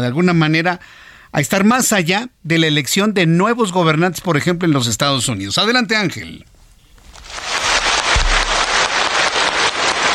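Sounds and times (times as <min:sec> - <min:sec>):
speech: 0:00.0 - 0:06.5
rhythmic applause from a large assembly: 0:07.2 - 0:10.1.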